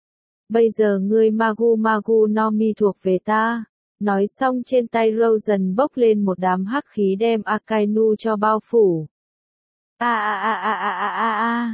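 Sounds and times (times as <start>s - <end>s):
speech: 0.5s - 9.1s, 10.0s - 11.7s
agonized scream from inside: 10.0s - 11.7s.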